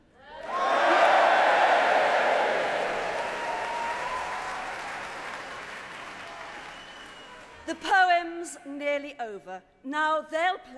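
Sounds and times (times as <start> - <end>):
audience cheering and applauding: 0.4 - 7.6
speech: 7.7 - 10.7.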